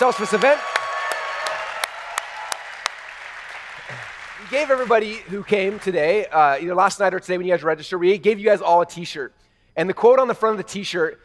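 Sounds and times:
speech: 0.0s - 0.7s, 4.4s - 11.2s
audience applause: 0.0s - 6.2s.

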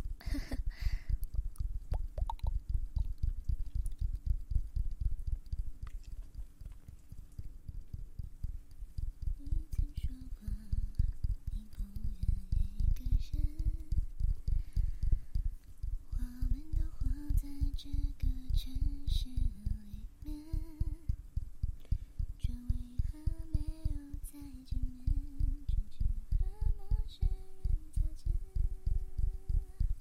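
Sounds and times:
wavering hum-like tone: 0.0s - 30.0s
ASMR ear eating sounds: 5.8s - 7.6s.

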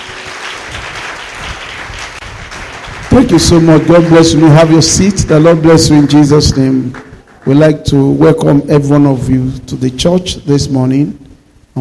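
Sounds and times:
audience applauding the choir: 0.0s - 7.8s
speech: 3.1s - 11.2s.

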